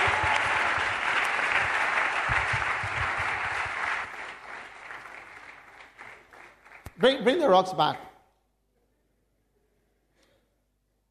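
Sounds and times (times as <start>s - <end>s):
crowd applauding: 0.0s - 7.4s
speech: 7.0s - 8.1s.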